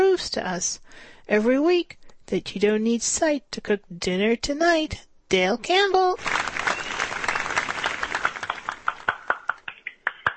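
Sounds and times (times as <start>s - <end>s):
speech: 0.2s - 6.4s
person clapping: 6.2s - 10.3s.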